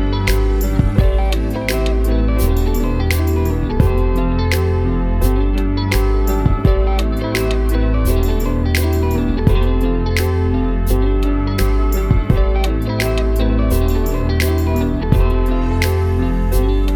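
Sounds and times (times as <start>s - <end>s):
chilling guitar music tuned to 432 Hz: 0.0s - 16.9s.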